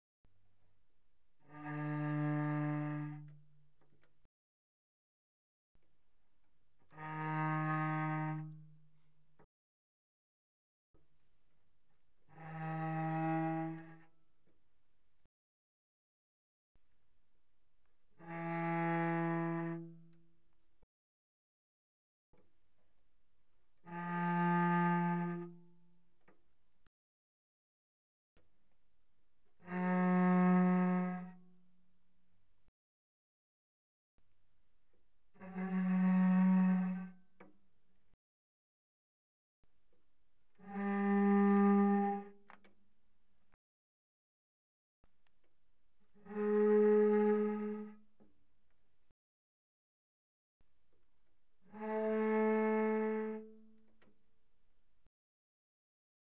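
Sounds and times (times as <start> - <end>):
cello bowed very softly on the C string: 1.2 - 4.2, 6.7 - 9.5, 12.1 - 14.6, 18.0 - 20.5, 23.6 - 26.4, 29.4 - 31.9, 35.3 - 37.7, 40.5 - 42.6, 46.0 - 48.3, 51.6 - 54.2.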